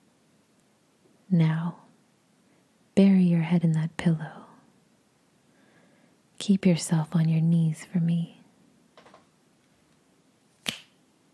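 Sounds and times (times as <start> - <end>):
speech: 1.3 - 1.8, 3.5 - 4.4, 6.4 - 8.4
finger snap: 10.6 - 11.0.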